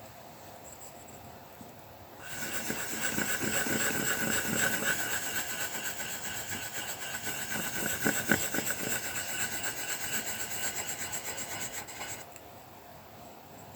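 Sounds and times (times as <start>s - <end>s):
colouring pencil scratching on paper: 2.2s - 12.2s.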